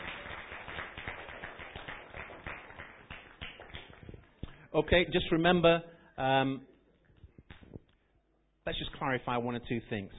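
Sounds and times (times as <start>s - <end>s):
round of applause: 0.0s - 4.6s
speech: 4.7s - 6.7s, 8.7s - 10.1s.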